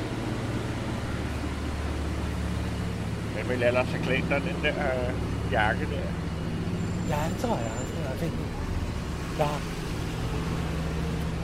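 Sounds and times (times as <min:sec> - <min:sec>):
loud motorway traffic noise: 0:00.0 - 0:11.4
speech: 0:03.4 - 0:06.3, 0:07.1 - 0:08.6, 0:09.4 - 0:09.8.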